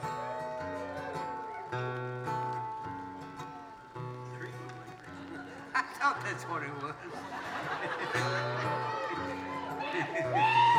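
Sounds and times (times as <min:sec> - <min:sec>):
rebel yell from a crowd: 0:00.0 - 0:02.5, 0:07.6 - 0:10.7
speech: 0:06.0 - 0:08.6, 0:10.0 - 0:10.6
laughter: 0:06.8 - 0:10.7.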